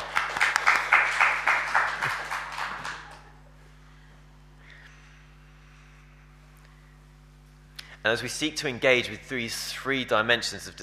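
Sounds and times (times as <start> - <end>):
audience applause: 0.0 - 3.3
speech: 8.1 - 10.8.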